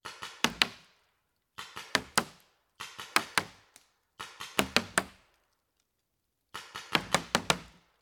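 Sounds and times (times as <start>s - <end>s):
paintball gun impact: 0.0s - 0.9s, 1.6s - 5.2s, 6.6s - 7.8s.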